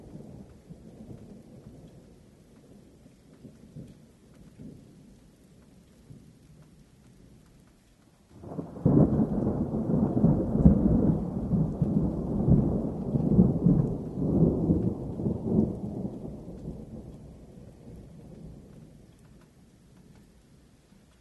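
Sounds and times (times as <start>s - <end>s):
lightning: 8.4s - 19.0s.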